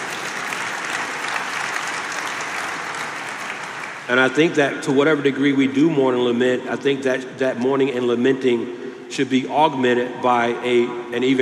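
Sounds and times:
audience applause: 0.0s - 4.2s
speech: 4.1s - 11.4s.

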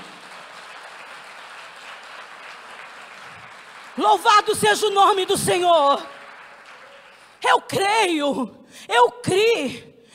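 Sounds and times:
audience applause: 0.0s - 7.4s
speech: 4.0s - 6.2s, 7.4s - 9.9s.

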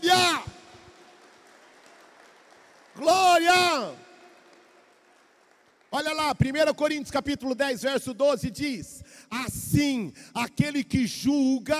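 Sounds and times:
audience applauding: 0.0s - 6.2s
speech: 6.0s - 11.7s.

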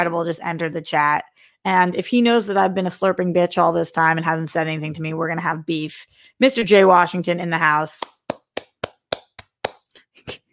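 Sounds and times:
speech: 0.0s - 8.1s
hand clapping: 8.0s - 10.4s.

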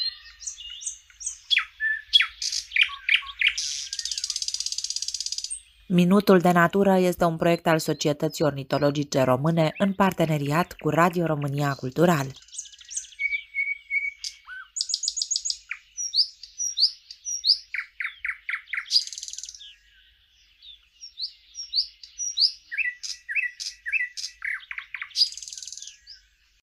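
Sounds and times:
thrush nightingale song: 0.0s - 26.6s
speech: 5.9s - 12.4s.

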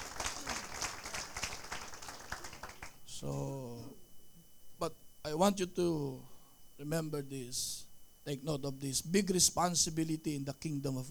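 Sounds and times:
church congregation clapping during a worship service: 0.0s - 3.4s
speech: 3.2s - 3.6s, 4.8s - 11.0s.

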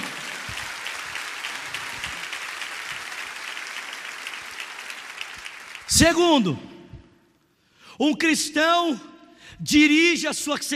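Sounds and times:
audience applause: 0.0s - 6.0s
speech: 5.9s - 6.7s, 8.0s - 10.7s.

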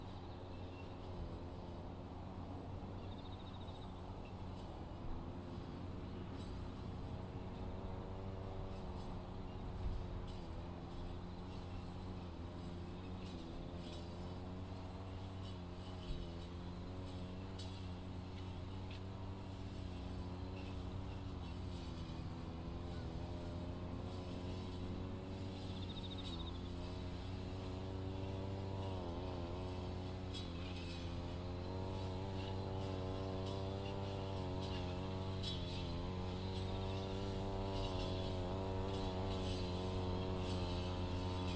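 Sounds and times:
brush cutter mowing weeds between sweet potato rows: 0.0s - 41.5s
faint high insect calls: 25.6s - 26.7s.

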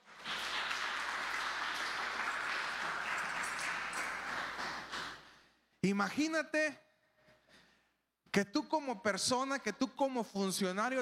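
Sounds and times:
audience applause: 0.0s - 5.2s
speech: 5.8s - 6.8s, 8.4s - 11.0s.

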